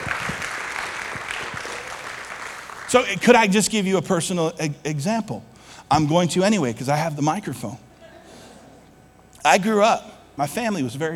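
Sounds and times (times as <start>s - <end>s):
round of applause: 0.0s - 3.2s
speech: 2.9s - 7.9s, 9.4s - 11.1s.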